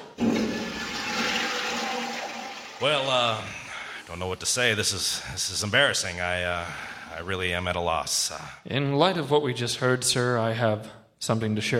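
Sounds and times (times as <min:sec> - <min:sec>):
toilet flushing: 0:00.0 - 0:04.5
speech: 0:02.8 - 0:11.7.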